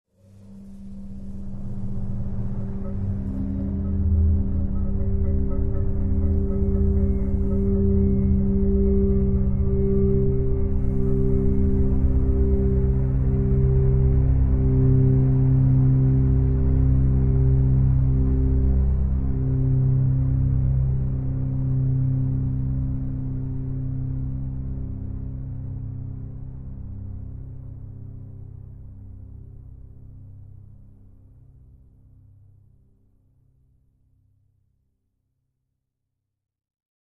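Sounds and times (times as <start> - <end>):
tense music: 0.4 - 28.4.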